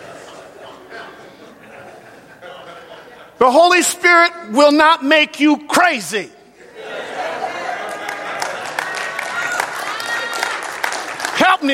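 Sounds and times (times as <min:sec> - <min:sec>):
laughter: 0:00.0 - 0:03.8, 0:06.5 - 0:10.0
speech: 0:03.4 - 0:06.4
audience applause: 0:07.4 - 0:11.7.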